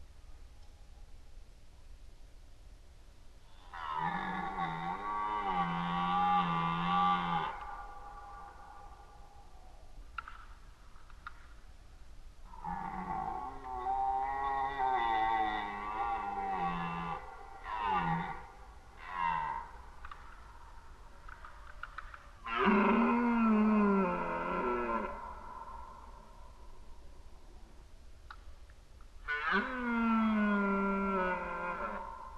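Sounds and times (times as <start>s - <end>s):
red deer roaring: 3.5s - 8.9s, 12.5s - 20.2s, 22.4s - 26.2s, 29.2s - 32.3s
faint clicks: 10.0s - 11.8s, 12.9s - 13.8s, 19.4s - 23.1s, 28.2s - 29.2s.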